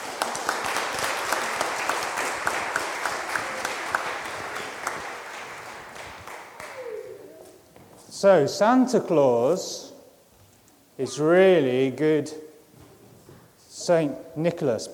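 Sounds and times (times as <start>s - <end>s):
crowd clapping: 0.0s - 6.9s
speech: 8.2s - 9.9s, 11.0s - 12.4s, 13.8s - 14.9s.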